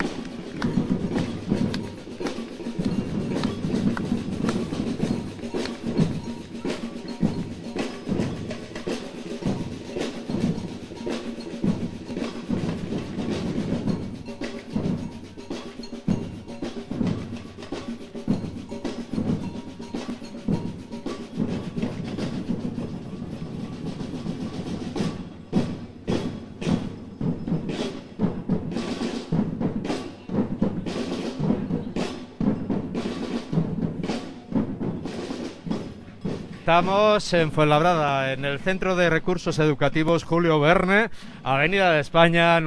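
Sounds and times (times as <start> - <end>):
batucada samba drum group playing: 0.0 - 42.6
speech: 36.7 - 42.6.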